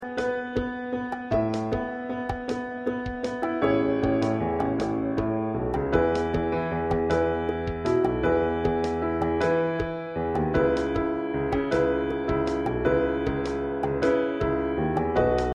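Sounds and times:
musical accompaniment: 0.0s - 15.5s.

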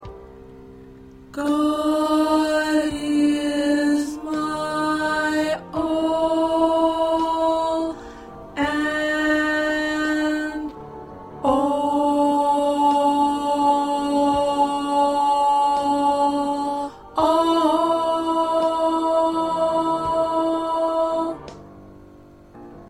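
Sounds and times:
first tenor voice singing: 1.4s - 10.8s, 11.4s - 21.6s.

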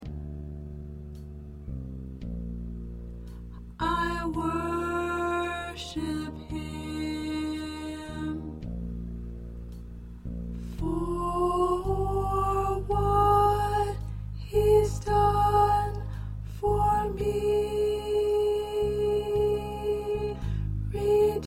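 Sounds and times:
soprano singing choir parts: 3.7s - 8.7s, 10.7s - 21.4s.

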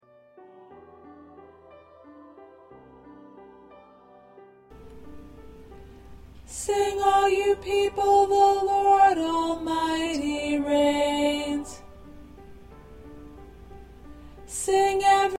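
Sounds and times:
alto choir singing: 0.4s - 4.7s, 6.5s - 12.1s, 14.5s - 15.3s.

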